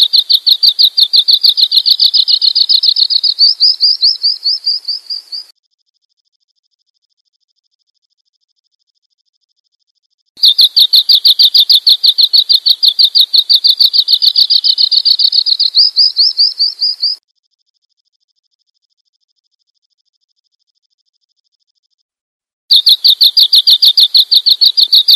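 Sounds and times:
bird chirping: 0.0 - 5.5, 10.4 - 17.2, 22.7 - 25.1.

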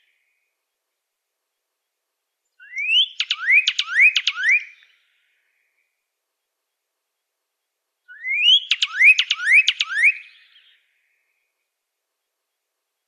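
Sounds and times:
Pyrrhuloxia singing rising whistles: 2.6 - 5.0, 8.1 - 10.8.

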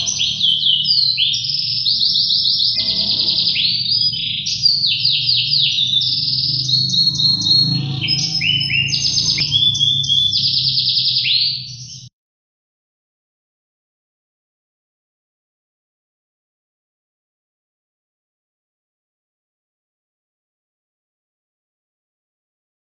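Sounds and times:
modified gladiator canary singing: 0.0 - 12.1.

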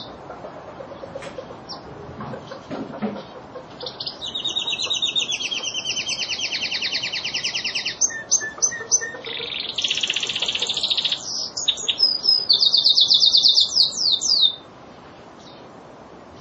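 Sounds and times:
lizard canary trilling: 3.5 - 14.6.

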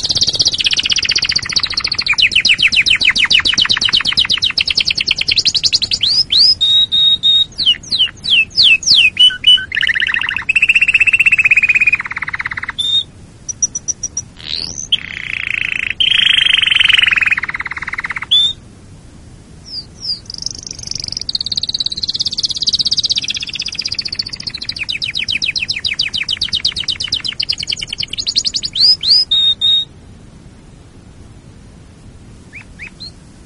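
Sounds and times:
canary singing trills: 0.0 - 18.6, 19.6 - 29.9, 32.5 - 33.2.

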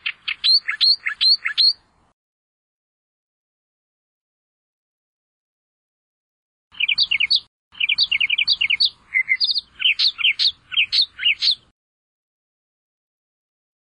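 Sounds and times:
Australian reed warbler song: 0.0 - 2.1, 6.7 - 11.7.

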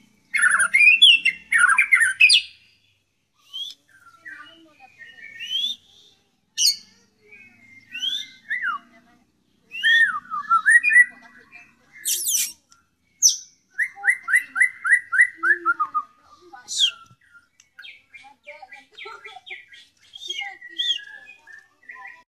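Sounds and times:
White-rumped shama song: 0.3 - 2.6, 3.4 - 6.8, 7.4 - 8.9, 9.7 - 11.2, 11.9 - 12.6, 13.2 - 18.0, 19.5 - 22.2.

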